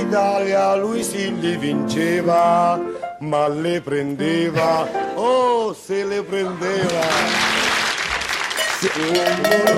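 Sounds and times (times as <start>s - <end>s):
speech: 0.1s - 7.6s, 8.8s - 9.7s
Il Musichiere quiz show bell from 1959: 8.5s - 9.7s.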